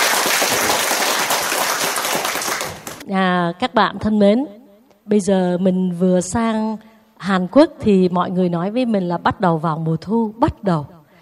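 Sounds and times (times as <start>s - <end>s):
audience applause: 0.0s - 3.0s
speech: 3.1s - 11.0s.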